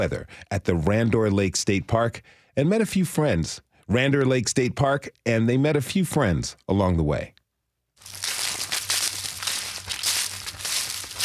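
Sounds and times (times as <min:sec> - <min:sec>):
speech: 0:00.0 - 0:07.4
footsteps crunching dry fall leaves: 0:08.0 - 0:11.2.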